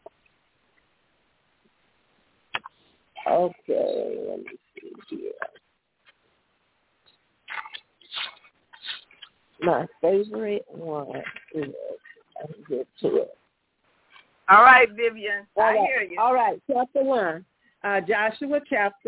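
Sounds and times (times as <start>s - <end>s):
speech: 3.4s - 5.4s, 9.6s - 13.4s, 14.5s - 19.0s
book pages turning: 7.5s - 9.4s.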